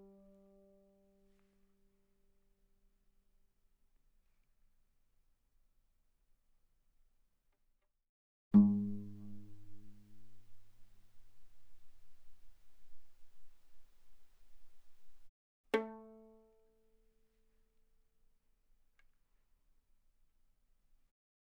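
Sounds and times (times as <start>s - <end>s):
violin pizzicato fortissimo on G string: 8.6s - 16.1s.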